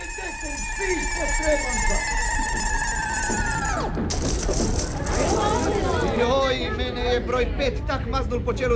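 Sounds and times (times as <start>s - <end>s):
machine beeping alarm: 0.0s - 5.0s
chattering background: 0.0s - 8.7s
speech: 1.3s - 2.0s, 7.2s - 8.7s.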